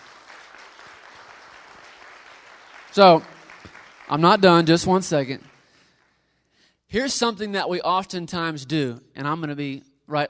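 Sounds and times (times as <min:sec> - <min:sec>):
crowd round of applause: 0:00.0 - 0:06.1
speech: 0:03.0 - 0:03.3, 0:04.1 - 0:05.5, 0:06.9 - 0:10.2.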